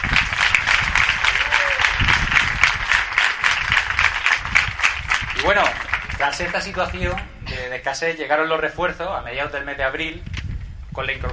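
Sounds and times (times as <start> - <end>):
audience applause: 0.0 - 7.0
speech: 5.4 - 10.3, 11.0 - 11.3.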